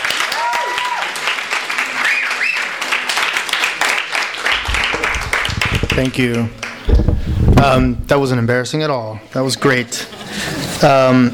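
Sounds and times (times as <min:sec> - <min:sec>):
audience applause: 0:00.0 - 0:06.8
speech: 0:06.0 - 0:11.3.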